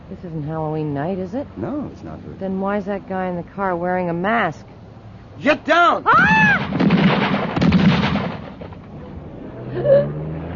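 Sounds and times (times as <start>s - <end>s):
speech: 0.1s - 4.8s, 5.4s - 7.3s, 9.8s - 10.2s
rapid gunshots fired from a car: 6.6s - 8.7s.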